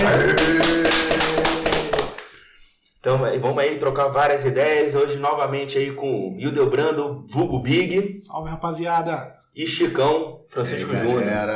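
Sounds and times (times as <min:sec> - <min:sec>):
clapping applause: 0:00.0 - 0:02.4
speech: 0:03.0 - 0:11.5.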